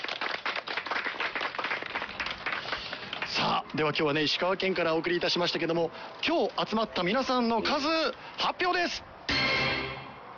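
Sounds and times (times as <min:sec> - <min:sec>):
audience applause at a live event in Ishikawa Prefecture: 0:00.0 - 0:03.6
speech: 0:03.5 - 0:09.1.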